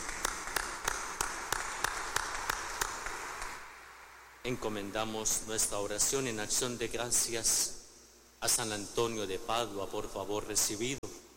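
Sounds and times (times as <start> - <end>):
audience applauding in welcome: 0.0 - 3.7
speech: 4.4 - 7.8, 8.4 - 11.0.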